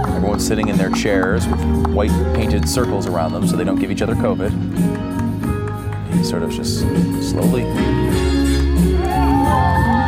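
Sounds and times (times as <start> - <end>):
speech: 0.4 - 5.2, 6.1 - 8.9
crowd cheering: 8.8 - 10.0.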